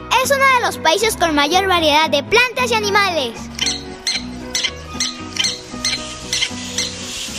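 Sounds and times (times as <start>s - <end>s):
speech: 0.3s - 3.5s
low sustained tonal background: 3.4s - 7.1s
Mexican prairie dog squeaky chirps: 3.5s - 7.3s.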